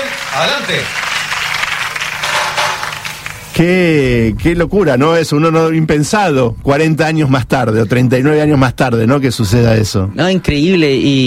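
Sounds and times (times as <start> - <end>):
audience applause: 0.0 - 3.6
speech: 0.4 - 1.0, 3.6 - 11.2.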